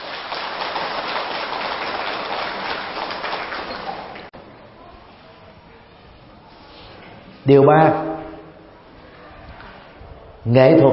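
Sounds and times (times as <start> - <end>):
large audience applause: 0.0 - 4.3
speech: 7.4 - 8.1, 10.5 - 10.9.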